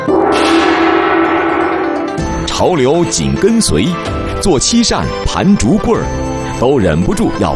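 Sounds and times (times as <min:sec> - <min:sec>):
large bronze gong being struck: 0:00.0 - 0:03.4
speech: 0:02.6 - 0:07.5.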